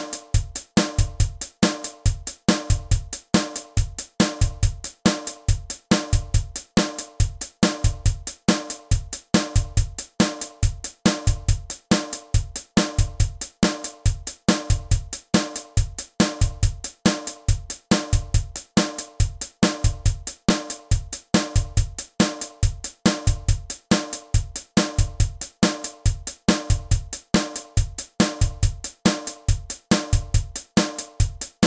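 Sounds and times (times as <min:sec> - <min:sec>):
drum track at 140 bpm: 0:00.0 - 0:31.6.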